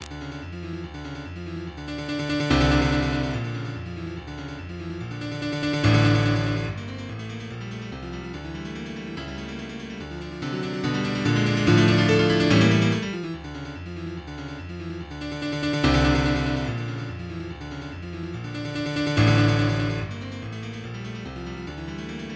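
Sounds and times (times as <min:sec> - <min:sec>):
classical etude: 0:02.5 - 0:22.3.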